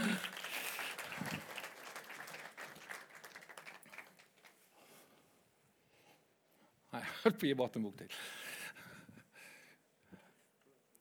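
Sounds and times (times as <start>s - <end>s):
audience applause: 0.0s - 4.6s
speech: 7.2s - 8.4s.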